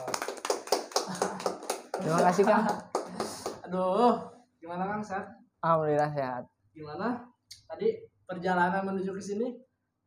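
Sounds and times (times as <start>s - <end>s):
hands clapping, applause: 0.0s - 3.7s
laughter: 1.0s - 3.4s
speech: 2.0s - 2.9s, 3.7s - 10.0s.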